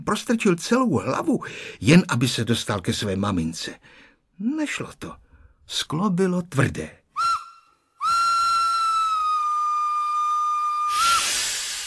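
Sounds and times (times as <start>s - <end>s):
speech: 0.0s - 7.0s
train whistle as train departs: 7.2s - 11.8s
loud rush of hissing steam: 10.8s - 11.8s.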